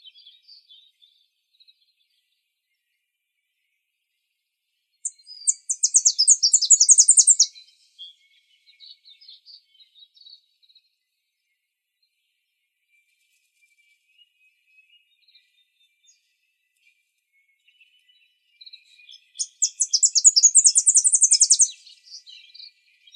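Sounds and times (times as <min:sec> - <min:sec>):
Tennessee Warbler singing: 0:00.0 - 0:23.1.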